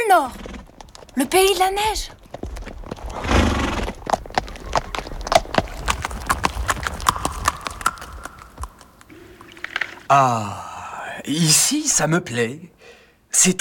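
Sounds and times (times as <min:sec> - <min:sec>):
horse hooves clip-clopping: 0:00.0 - 0:10.0
speech: 0:00.1 - 0:00.4, 0:01.2 - 0:02.2, 0:10.1 - 0:10.6, 0:11.2 - 0:13.5.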